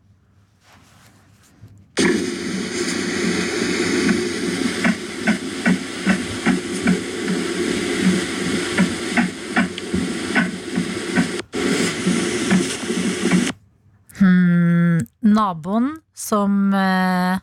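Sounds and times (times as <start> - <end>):
fetal heartbeat on a doppler monitor: 2.0 - 13.6
static hiss of a doppler monitor: 2.0 - 13.6
speech: 15.4 - 17.4.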